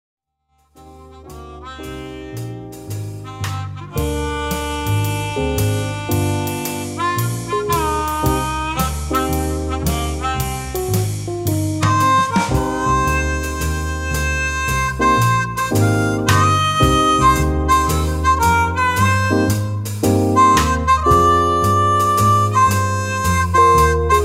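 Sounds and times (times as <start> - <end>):
jazz or blues music: 0.6 - 24.2.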